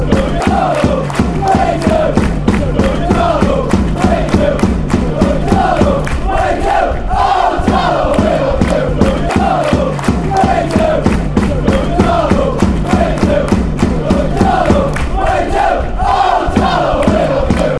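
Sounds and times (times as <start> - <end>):
Darlington football fans chanting: 0.0 - 17.7.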